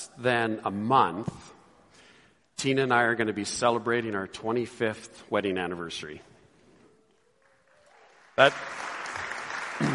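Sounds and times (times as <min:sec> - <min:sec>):
speech: 0:00.2 - 0:01.6, 0:02.6 - 0:06.3, 0:08.4 - 0:08.8
audience applause: 0:07.4 - 0:09.9.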